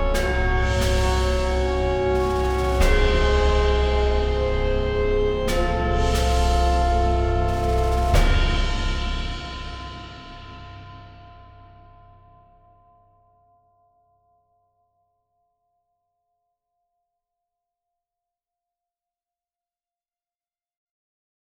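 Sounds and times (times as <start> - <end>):
cinematic stabs: 0.0 - 11.4.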